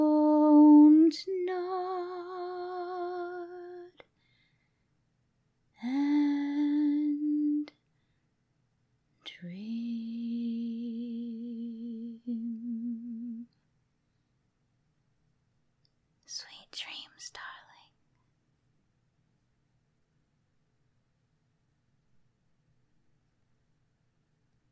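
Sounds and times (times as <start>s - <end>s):
a cappella lullaby singing: 0.0s - 4.1s, 5.8s - 7.9s, 9.2s - 13.6s.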